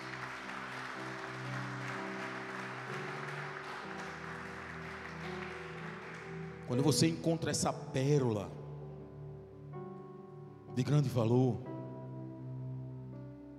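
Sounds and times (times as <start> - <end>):
crowd applause: 0.0 - 7.2
speech: 6.7 - 8.6, 10.8 - 11.7.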